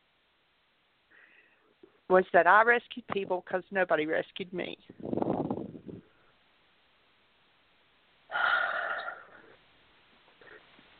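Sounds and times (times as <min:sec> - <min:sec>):
breaths during a guided breathing exercise: 0:01.1 - 0:01.8
speech: 0:02.1 - 0:05.2.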